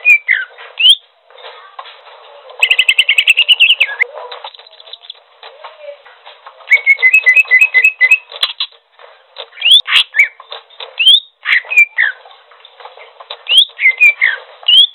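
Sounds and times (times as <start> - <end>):
bird singing trills: 0.0 - 1.0, 2.6 - 5.2, 6.7 - 8.8, 9.6 - 10.4, 11.0 - 12.2, 13.4 - 14.9.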